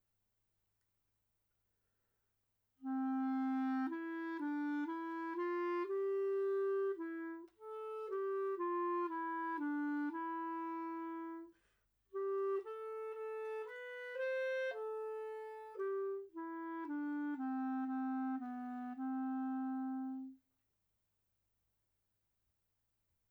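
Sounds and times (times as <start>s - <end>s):
clarinet song: 2.8s - 20.4s.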